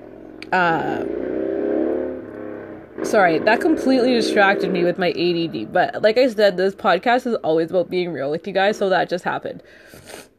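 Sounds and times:
neighbours' motorcycles riding past on a neighbourhood street: 0.0s - 5.7s
speech: 0.5s - 1.4s, 3.0s - 10.3s.

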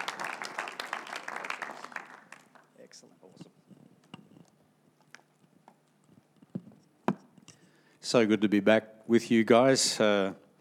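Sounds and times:
crowd applause: 0.0s - 2.7s
speech: 8.1s - 10.4s.

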